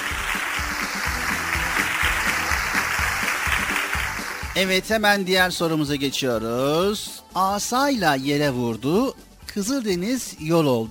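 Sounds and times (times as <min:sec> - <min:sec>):
crowd applause: 0:00.0 - 0:04.6
speech: 0:04.6 - 0:10.9.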